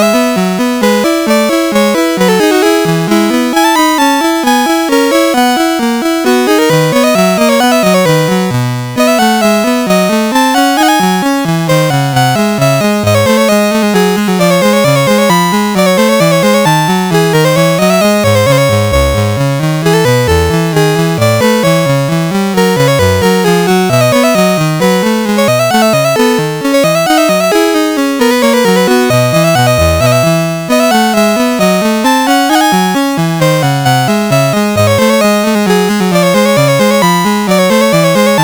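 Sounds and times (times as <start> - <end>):
polonaise on a sound chip: 0.0 - 38.4.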